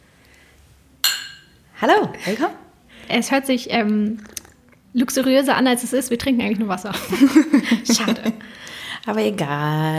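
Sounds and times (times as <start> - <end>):
glasses clinking in a toast: 1.0 - 1.6
speech: 1.8 - 9.9
laughter: 7.0 - 8.5.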